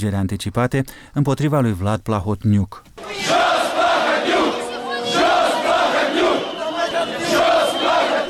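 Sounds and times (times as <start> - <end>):
speech: 0.0 - 3.3
thousands of protesters demonstrating at Parliament: 3.0 - 8.2.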